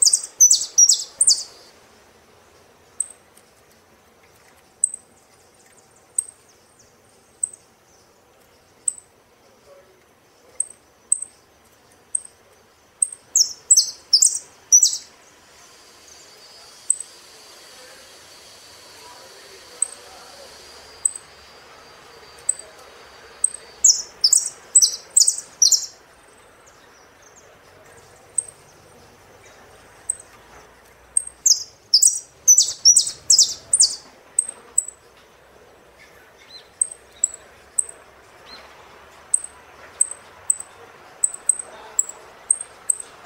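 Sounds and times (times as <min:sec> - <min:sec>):
saffron finch song: 0:00.0 - 0:01.7, 0:02.9 - 0:03.2, 0:04.8 - 0:07.7, 0:08.7 - 0:09.1, 0:10.5 - 0:12.4, 0:13.0 - 0:15.1, 0:19.7 - 0:30.5, 0:31.1 - 0:35.0, 0:36.0 - 0:43.2
faint hiss: 0:00.0 - 0:43.2.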